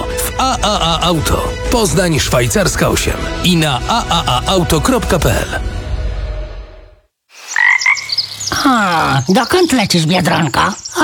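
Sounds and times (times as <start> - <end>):
low rumble: 0.0 - 7.0
speech: 0.4 - 5.7, 8.6 - 11.0
frog croaking: 7.4 - 11.0.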